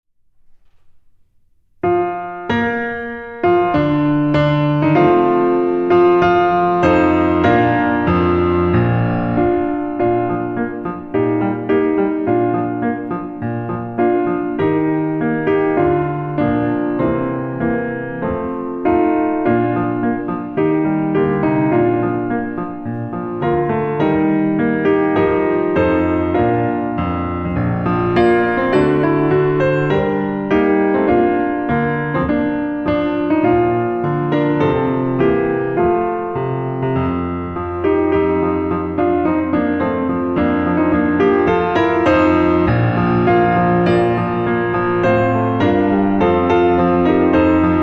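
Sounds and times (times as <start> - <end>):
piano: 0.2 - 47.8.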